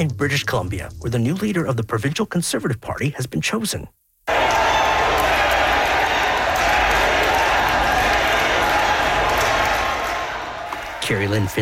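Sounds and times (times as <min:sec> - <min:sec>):
speech: 0:00.0 - 0:04.0, 0:11.1 - 0:11.6
crowd of supporters cheering and chanting: 0:04.3 - 0:11.6.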